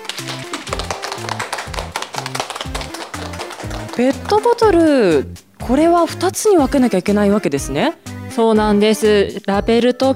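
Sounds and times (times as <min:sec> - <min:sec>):
applause: 0:00.0 - 0:04.6
speech: 0:00.2 - 0:00.4, 0:04.0 - 0:10.1.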